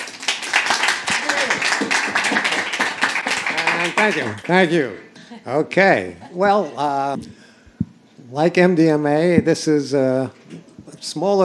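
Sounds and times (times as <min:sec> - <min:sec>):
audience applause welcoming a speaker: 0:00.0 - 0:04.8
speech: 0:03.8 - 0:07.4, 0:08.3 - 0:10.4, 0:11.0 - 0:11.4.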